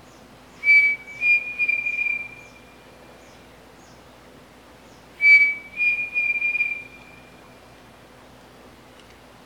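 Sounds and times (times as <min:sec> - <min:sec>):
pavonine cuckoo song: 0:00.5 - 0:02.8, 0:05.2 - 0:07.4.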